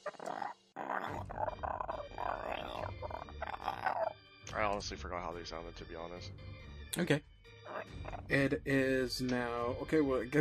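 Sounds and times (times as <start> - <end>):
voice imitating a guttural zergling noise: 0.1 - 4.1
speech: 4.8 - 7.3, 7.9 - 10.3.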